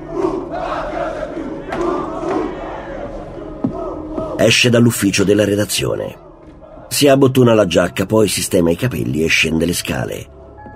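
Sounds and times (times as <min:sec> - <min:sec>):
large crowd cheering and shouting in acclaim: 0:00.0 - 0:08.4
speech: 0:04.4 - 0:06.2, 0:06.9 - 0:10.4.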